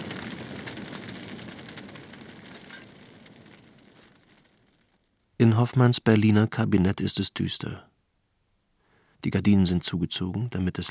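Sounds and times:
large fire roaring and crackling in a burning theater: 0:00.0 - 0:05.8
speech: 0:05.4 - 0:07.9, 0:09.2 - 0:10.8.

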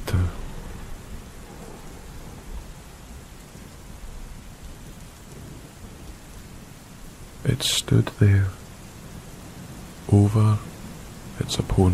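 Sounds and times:
heavy rain: 0:00.0 - 0:11.9
thunder: 0:00.5 - 0:02.8
speech: 0:07.5 - 0:08.6, 0:10.1 - 0:10.7, 0:11.4 - 0:11.9.

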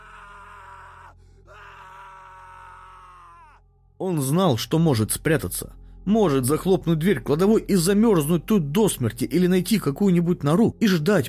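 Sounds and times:
person screaming: 0:00.0 - 0:03.6
speech: 0:04.0 - 0:11.2.

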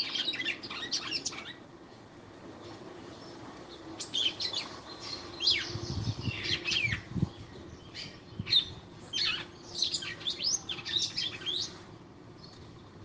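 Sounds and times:
female red-cowled cardinal singing sharp high chirps and twitters: 0:00.0 - 0:01.6, 0:03.0 - 0:11.8.

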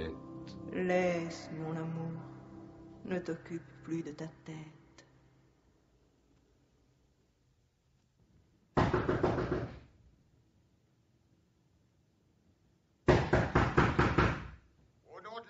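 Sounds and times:
speech: 0:00.1 - 0:02.3, 0:03.0 - 0:04.8
police knocking loudly on a door: 0:08.8 - 0:09.8, 0:13.1 - 0:14.5.

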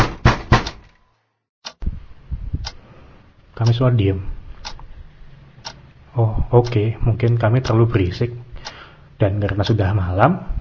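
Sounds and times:
loud banging knocks on a door: 0:00.0 - 0:00.8
speech: 0:03.6 - 0:04.4, 0:06.2 - 0:08.4, 0:09.2 - 0:10.5.

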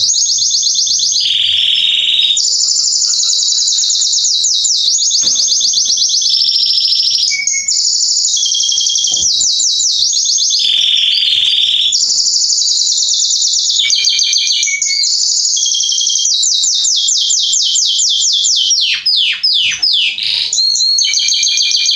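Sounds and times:
canary song: 0:00.0 - 0:21.9.

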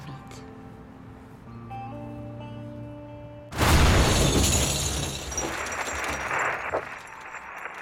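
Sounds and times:
bomb explosion: 0:03.5 - 0:06.9.

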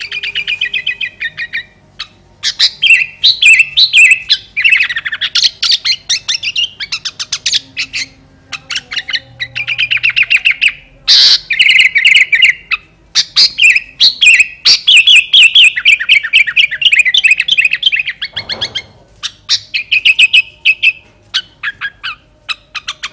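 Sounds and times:
sooty-headed bulbul singing: 0:00.0 - 0:23.1.

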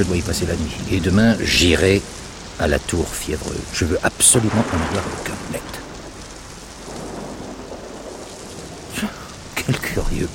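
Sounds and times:
speech: 0:00.0 - 0:05.8, 0:09.0 - 0:10.3
heavy rain: 0:00.0 - 0:10.3
thunder: 0:04.4 - 0:09.6.

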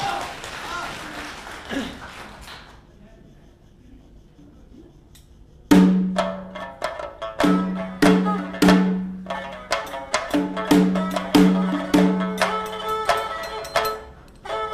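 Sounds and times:
audience applause: 0:00.0 - 0:02.9
sharp percussive strikes: 0:05.7 - 0:14.7.

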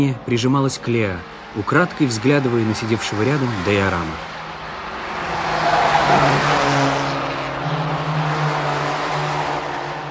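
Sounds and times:
speech: 0:00.0 - 0:04.4
car speeding along a highway: 0:00.0 - 0:10.0.

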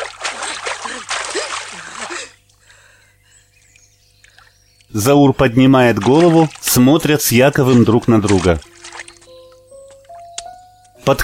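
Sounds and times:
hands slapping the water of a stream, splashing: 0:00.0 - 0:02.4, 0:05.8 - 0:09.3
speech: 0:05.0 - 0:08.7.

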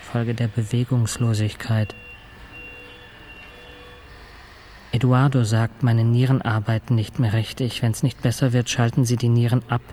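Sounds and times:
speech: 0:00.1 - 0:02.1, 0:05.0 - 0:09.9
medical monitor alarm beeping: 0:00.2 - 0:05.0.

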